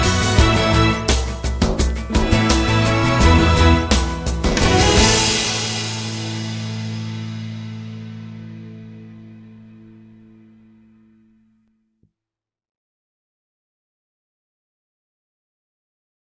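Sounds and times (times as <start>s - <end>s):
healing rhythms: 0.0s - 9.1s.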